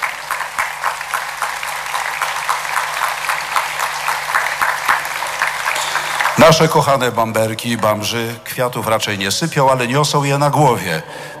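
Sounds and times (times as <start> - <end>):
audience applause: 0.0 - 7.3
speech: 6.4 - 11.3.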